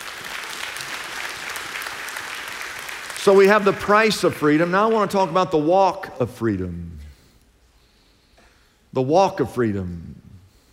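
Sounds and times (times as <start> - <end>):
audience clapping: 0.0 - 5.4
speech: 3.2 - 7.0, 9.0 - 10.2.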